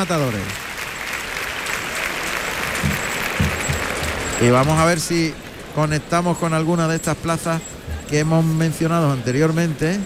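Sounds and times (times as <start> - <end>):
speech: 0.0 - 0.7, 4.4 - 10.0
bullring crowd ovation applause: 0.0 - 5.5.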